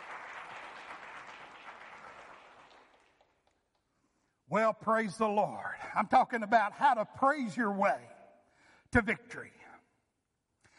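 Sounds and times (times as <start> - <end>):
audience hand clapping: 0.0 - 3.9
speech: 4.5 - 8.2, 8.9 - 9.6.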